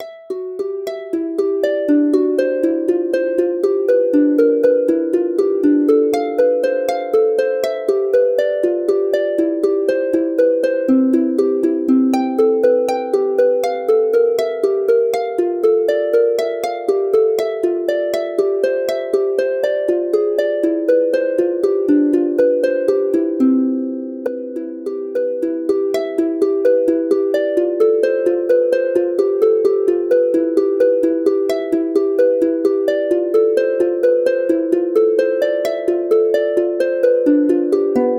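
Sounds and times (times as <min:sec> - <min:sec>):
lute melody: 0:00.0 - 0:38.1.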